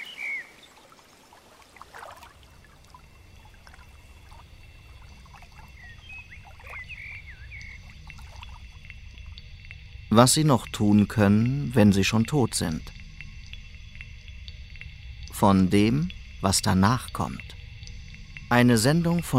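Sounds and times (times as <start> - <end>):
trees rustling in wind: 0.0 - 13.5
wind rising: 0.0 - 19.3
speech: 10.2 - 13.0, 15.4 - 17.6, 18.5 - 19.3.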